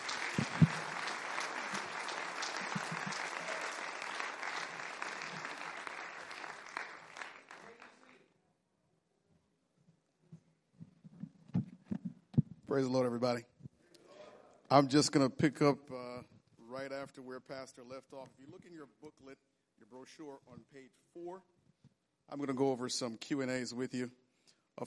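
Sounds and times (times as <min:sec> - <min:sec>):
audience clapping hands: 0:00.0 - 0:08.3
speech: 0:00.4 - 0:00.6, 0:12.8 - 0:13.5, 0:14.7 - 0:16.0, 0:17.0 - 0:21.6, 0:22.3 - 0:24.2.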